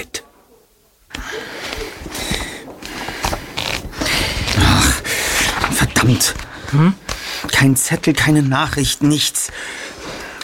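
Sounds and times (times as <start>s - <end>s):
book pages riffled through fingers: 1.6s - 7.2s
speech: 6.1s - 7.0s, 7.6s - 9.8s.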